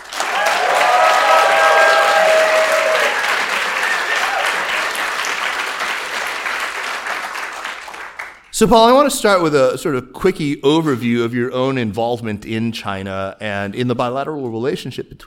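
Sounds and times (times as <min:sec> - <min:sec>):
audience clapping: 0:00.0 - 0:08.5
faint cheers and whistles: 0:00.2 - 0:04.8
speech: 0:08.6 - 0:15.2.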